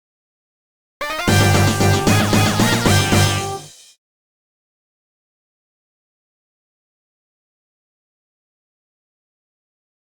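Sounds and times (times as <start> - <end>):
summon music: 1.0 - 3.9.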